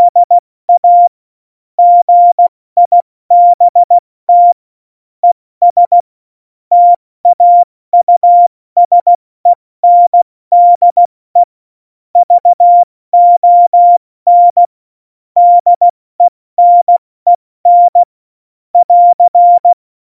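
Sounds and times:
CW Morse code beeps: 0.0s - 1.1s, 1.8s - 4.6s, 5.2s - 6.0s, 6.7s - 9.2s, 9.8s - 11.5s, 12.2s - 14.7s, 15.4s - 18.1s, 18.8s - 19.8s.

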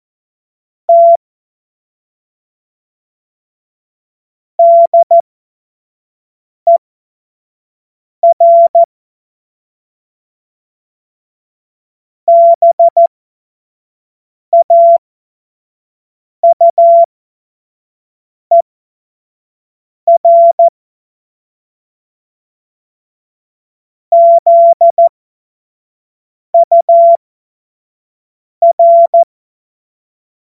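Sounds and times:
CW Morse code beeps: 0.9s - 1.2s, 4.6s - 5.2s, 8.2s - 8.9s, 12.3s - 13.1s, 14.6s - 15.0s, 16.4s - 17.1s, 20.1s - 20.7s, 24.1s - 25.1s, 26.6s - 27.2s, 28.6s - 29.3s.

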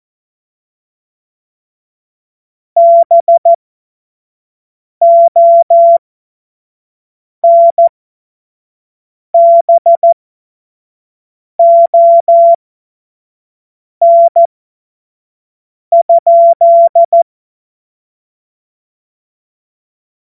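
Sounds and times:
morse code CW: 2.8s - 3.6s, 5.0s - 6.0s, 9.4s - 10.2s, 11.6s - 12.6s, 14.0s - 14.5s, 16.0s - 17.2s.

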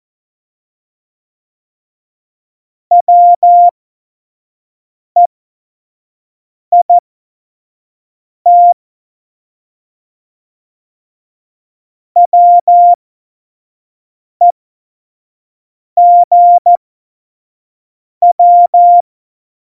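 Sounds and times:
morse code beeps: 2.9s - 3.7s, 8.5s - 8.8s, 12.2s - 13.0s, 16.0s - 16.8s, 18.2s - 19.0s.

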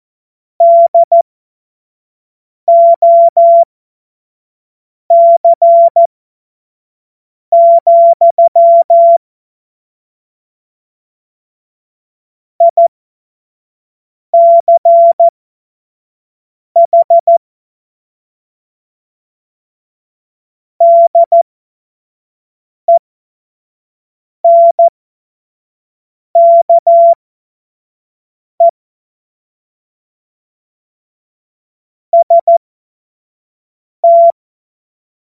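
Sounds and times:
CW Morse code beeps: 0.6s - 1.2s, 2.7s - 3.7s, 5.1s - 6.1s, 7.6s - 9.2s, 12.6s - 12.8s, 14.4s - 15.3s, 16.8s - 17.4s, 20.8s - 21.4s, 24.5s - 24.9s, 26.4s - 27.2s, 32.2s - 32.6s, 34.0s - 34.4s.

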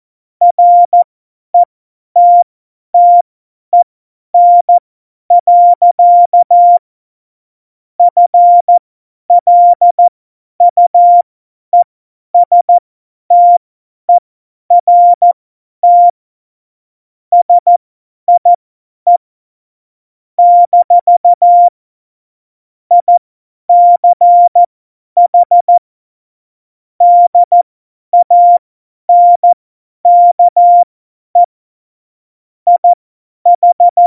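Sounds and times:
CW Morse code at tempo 70: 0.4s - 2.4s, 3.0s - 3.2s, 4.4s - 6.8s, 8.0s - 8.8s, 9.4s - 11.2s, 12.4s - 13.6s, 14.7s - 16.1s, 17.3s - 18.5s, 20.4s - 21.7s, 22.9s - 25.8s, 27.0s - 27.6s, 28.2s - 31.5s, 32.7s - 34.0s.

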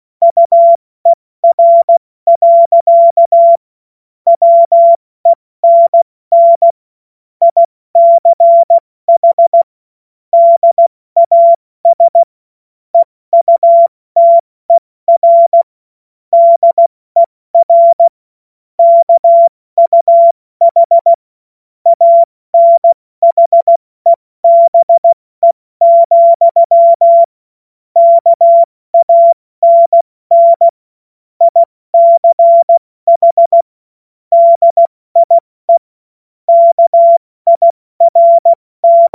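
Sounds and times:
CW Morse code beeps: 0.2s - 0.8s, 1.4s - 3.6s, 4.3s - 6.8s, 7.4s - 9.7s, 10.4s - 12.3s, 13.0s - 15.7s, 16.4s - 18.1s, 18.8s - 21.2s, 21.9s - 27.3s, 28.0s - 30.8s, 31.4s - 33.7s, 34.3s - 35.9s, 36.5s - 39.1s.

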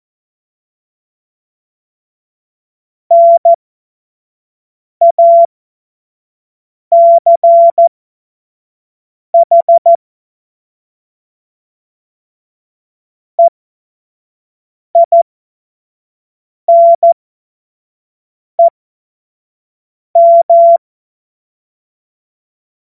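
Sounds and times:
CW Morse code beeps: 3.1s - 3.6s, 5.0s - 5.5s, 7.0s - 7.9s, 9.4s - 10.0s, 15.0s - 15.2s, 16.7s - 17.2s, 20.2s - 20.8s.

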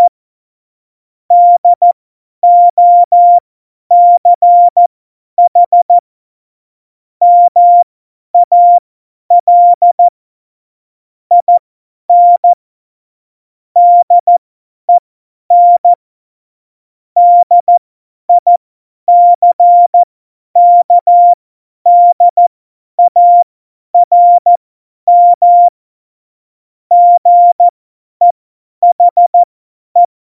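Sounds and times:
CW Morse code beeps: 1.3s - 4.8s, 5.5s - 5.9s, 7.2s - 7.8s, 8.4s - 10.1s, 11.3s - 12.6s, 13.8s - 14.4s, 15.5s - 16.0s, 17.2s - 22.4s, 23.0s - 23.4s, 24.0s - 25.8s, 26.9s - 30.1s.

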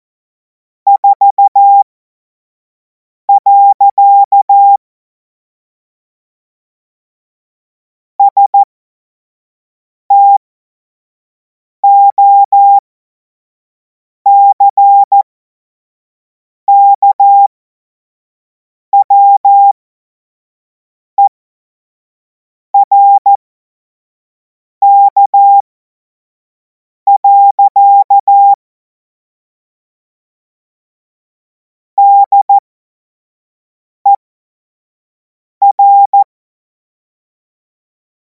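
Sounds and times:
Morse code course tones: 0.9s - 1.8s, 3.3s - 4.8s, 8.2s - 8.7s, 11.8s - 12.8s, 14.4s - 15.2s, 16.7s - 17.5s, 19.0s - 19.8s, 22.8s - 23.4s, 24.8s - 25.6s, 27.1s - 28.6s, 32.0s - 32.6s, 35.6s - 36.3s.

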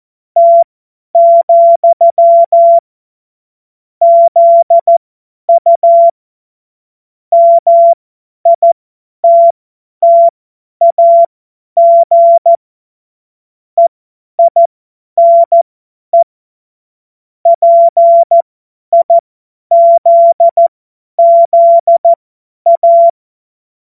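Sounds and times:
CW Morse code beeps: 0.4s - 0.6s, 1.2s - 2.8s, 4.0s - 6.2s, 7.3s - 12.6s, 13.8s - 15.6s, 17.5s - 23.2s.

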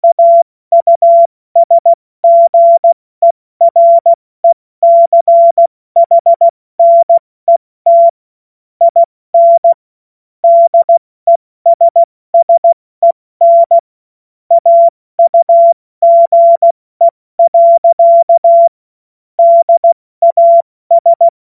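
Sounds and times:
morse code beeps: 0.0s - 3.0s, 3.7s - 8.2s, 8.8s - 9.8s, 10.4s - 13.8s, 14.5s - 18.8s, 19.4s - 21.4s.

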